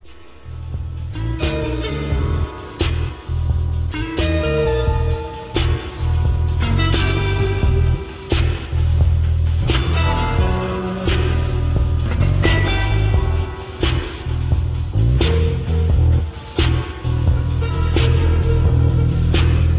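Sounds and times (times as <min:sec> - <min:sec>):
slinky blues music: 0:00.1 - 0:19.7.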